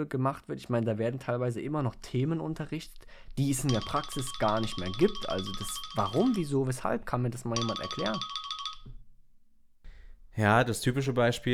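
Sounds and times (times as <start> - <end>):
speech: 0.0 - 9.0, 10.4 - 11.5
timer ringing: 2.6 - 9.0.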